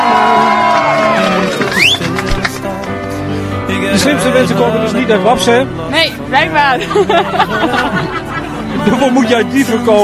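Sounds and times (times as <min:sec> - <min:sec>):
audience applause: 0:00.0 - 0:02.8
speech: 0:04.0 - 0:08.1, 0:08.8 - 0:10.0
laughter: 0:06.8 - 0:09.3.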